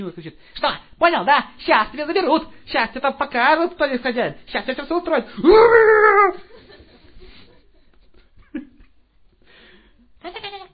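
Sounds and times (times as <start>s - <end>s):
speech: 0.0s - 6.5s
person imitating a small dog whimpering and yelping: 5.4s - 6.5s.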